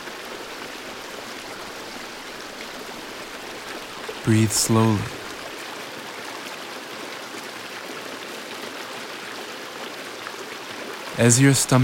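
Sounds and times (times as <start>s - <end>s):
flowing water in nature: 0.0s - 11.8s
speech: 4.2s - 5.2s, 11.2s - 11.8s.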